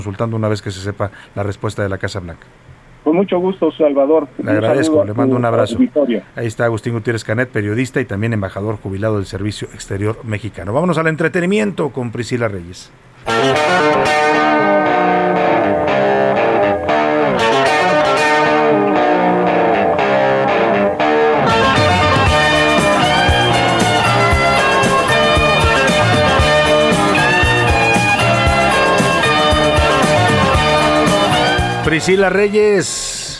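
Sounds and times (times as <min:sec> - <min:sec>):
speech: 0:00.0 - 0:14.6, 0:31.9 - 0:33.1
distorted electric rock guitar song with full band: 0:13.2 - 0:31.9.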